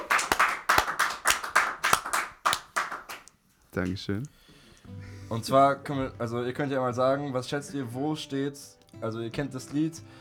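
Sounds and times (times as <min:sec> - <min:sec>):
applause: 0:00.0 - 0:03.3
speech: 0:03.7 - 0:10.1.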